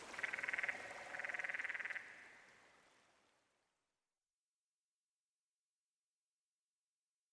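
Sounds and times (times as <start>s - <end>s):
canyon frog calling: 0.1s - 2.3s.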